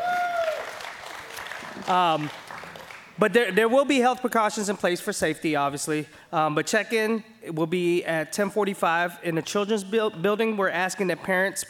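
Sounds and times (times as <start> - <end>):
loud whooping cheer from someone: 0.0 - 0.9
crowd applauding: 0.0 - 3.2
speech: 1.9 - 2.4, 3.2 - 11.6.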